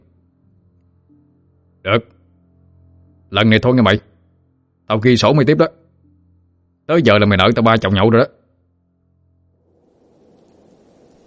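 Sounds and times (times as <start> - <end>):
speech: 1.8 - 2.2, 3.3 - 4.1, 4.9 - 5.8, 6.9 - 8.4
sea roaring: 9.7 - 11.2
thunderstorm heavy rain: 9.7 - 11.2.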